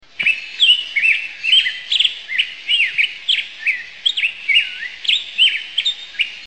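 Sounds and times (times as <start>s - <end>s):
faint hiss: 0.0s - 6.4s
black-headed grosbeak singing: 0.2s - 6.4s.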